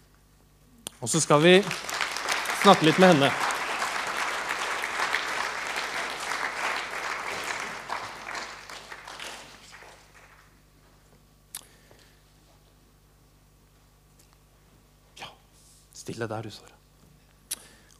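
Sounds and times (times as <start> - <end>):
speech: 1.0 - 2.0, 2.6 - 3.4, 16.2 - 16.8
audience applause: 1.0 - 10.6.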